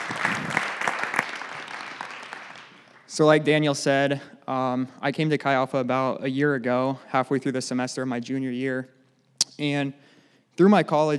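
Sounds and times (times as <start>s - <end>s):
round of applause: 0.0s - 3.1s
speech: 3.2s - 9.0s, 9.6s - 11.1s.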